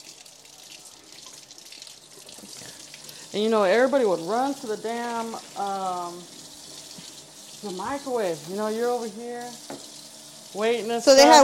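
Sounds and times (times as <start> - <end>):
water running from a faucet: 0.0 - 11.4
speech: 3.3 - 6.4, 7.6 - 9.9, 10.5 - 11.4.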